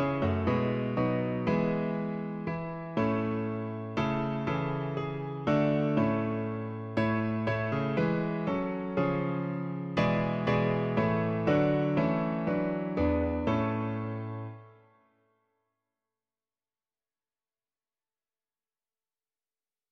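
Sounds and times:
piano version of a song: 0.0s - 15.0s.

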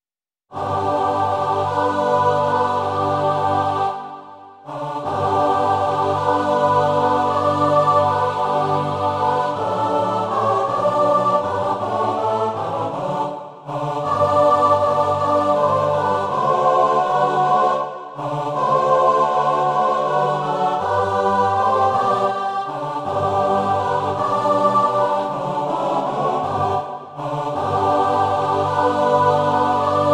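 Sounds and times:
choir singing: 0.5s - 30.1s.

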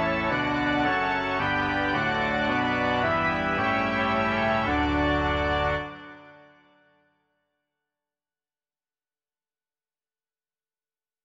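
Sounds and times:
organ: 0.0s - 6.6s.

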